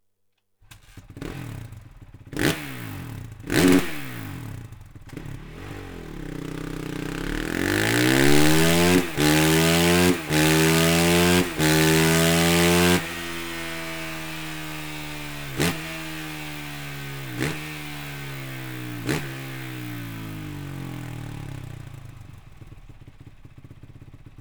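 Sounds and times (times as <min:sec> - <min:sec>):
stock Honda CRF450R motorcycle engine: 0:00.7 - 0:24.3.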